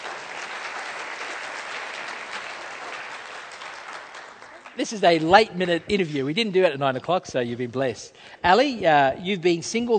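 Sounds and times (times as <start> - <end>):
audience applause: 0.0 - 5.8
speech: 4.8 - 9.9.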